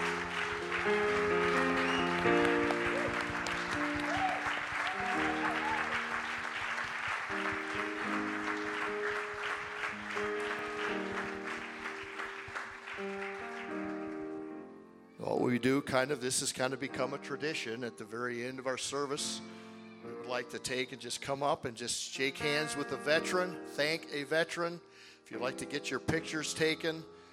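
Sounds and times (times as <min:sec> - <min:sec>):
audience applause: 0:00.0 - 0:14.4
speech: 0:00.8 - 0:01.1, 0:15.9 - 0:19.6, 0:20.3 - 0:27.2.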